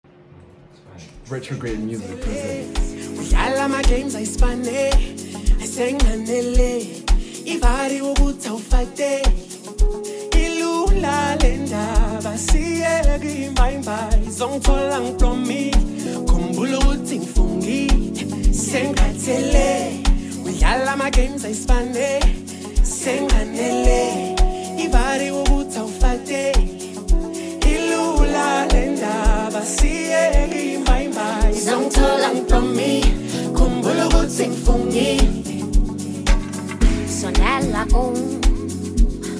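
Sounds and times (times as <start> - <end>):
amapiano song: 1.4 - 39.3.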